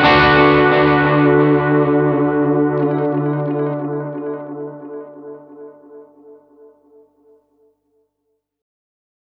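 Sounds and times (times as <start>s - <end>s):
space echo tape echo effect: 0.0s - 7.0s.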